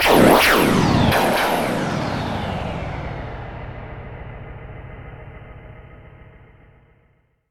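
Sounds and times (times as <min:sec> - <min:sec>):
bursting electric whoosh: 0:00.0 - 0:05.9.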